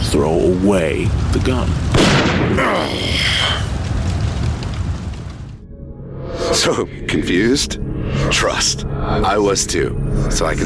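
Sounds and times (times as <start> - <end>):
debris rumble: 0.0 - 5.7
speech: 0.1 - 3.8, 6.6 - 10.6
loud explosion: 1.1 - 5.6.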